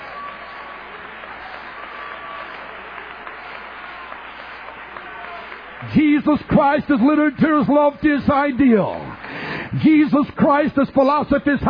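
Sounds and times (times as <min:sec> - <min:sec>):
audience applause: 0:00.0 - 0:08.0
speech: 0:05.8 - 0:11.6.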